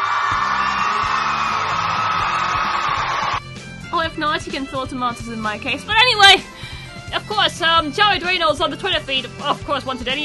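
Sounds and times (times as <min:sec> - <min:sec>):
crowd applause: 0:00.0 - 0:03.4
speech: 0:04.2 - 0:10.2.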